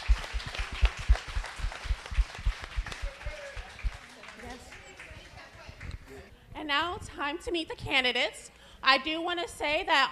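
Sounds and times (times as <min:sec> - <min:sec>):
audience round of applause: 0:00.0 - 0:05.4
speech: 0:06.7 - 0:10.1.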